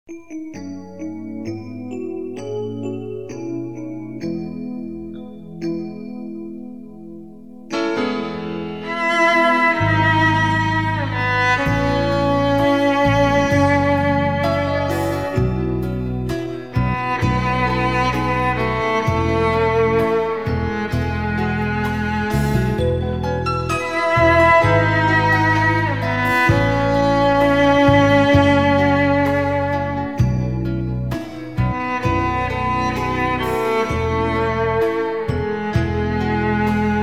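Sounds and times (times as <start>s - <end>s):
cello: 7.7s - 37.0s.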